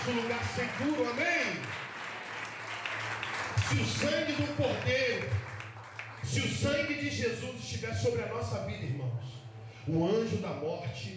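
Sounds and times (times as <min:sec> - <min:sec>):
speech: 0:00.0 - 0:01.9, 0:03.7 - 0:05.5, 0:06.2 - 0:11.1
audience applause: 0:00.0 - 0:06.6.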